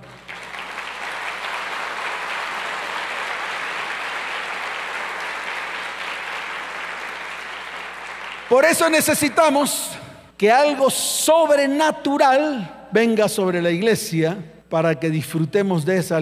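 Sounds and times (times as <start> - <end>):
audience applauding: 0.0 - 9.2
speech: 8.5 - 16.2.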